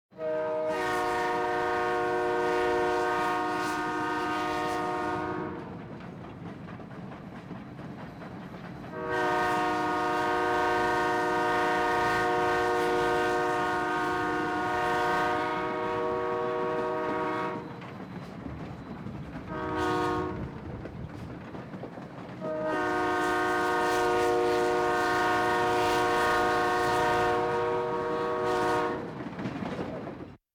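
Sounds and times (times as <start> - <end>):
train horn: 0.1 - 5.9, 8.9 - 17.9, 19.4 - 20.6, 22.4 - 29.4.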